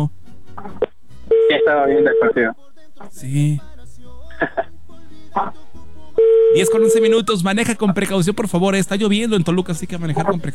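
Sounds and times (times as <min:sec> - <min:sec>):
telephone call connecting tone blips: 0:01.3 - 0:02.5, 0:06.2 - 0:07.2
speech: 0:01.5 - 0:03.7, 0:05.4 - 0:05.6, 0:06.5 - 0:10.5.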